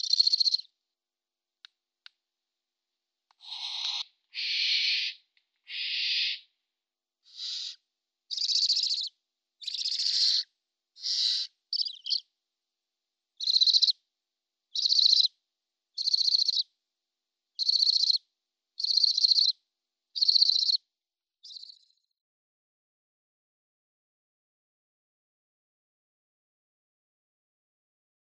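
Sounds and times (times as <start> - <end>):
barn owl chicks chirping: 0.0 - 0.7, 3.4 - 6.5, 7.3 - 12.3, 13.4 - 14.0, 14.7 - 15.3, 16.0 - 16.7, 17.6 - 18.2, 18.8 - 19.6, 20.2 - 20.8, 21.4 - 21.9
barn owl hissing: 3.4 - 6.5, 7.3 - 9.0, 9.7 - 11.5.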